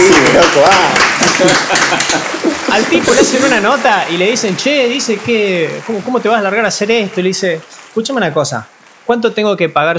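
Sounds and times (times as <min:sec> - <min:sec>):
laughter: 0:00.0 - 0:08.0
people clapping hands: 0:00.0 - 0:09.9
speech: 0:00.5 - 0:09.9.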